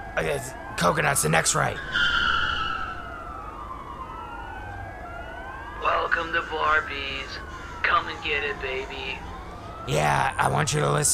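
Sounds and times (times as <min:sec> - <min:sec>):
police car siren wailing in pursuit: 0:00.0 - 0:11.1
speech: 0:00.2 - 0:02.2, 0:06.8 - 0:11.1.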